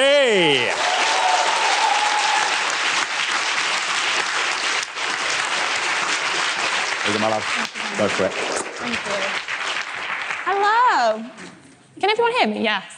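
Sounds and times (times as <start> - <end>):
speech: 0.0 - 0.8, 7.2 - 9.5, 11.0 - 12.9
large audience applause welcoming a speaker: 0.3 - 10.9.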